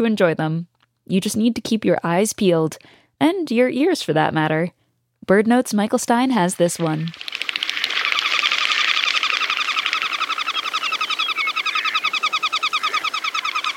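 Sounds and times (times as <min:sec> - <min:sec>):
speech: 0:00.0 - 0:07.4
goldeneye ducks' wings whistling low over water: 0:07.0 - 0:13.7.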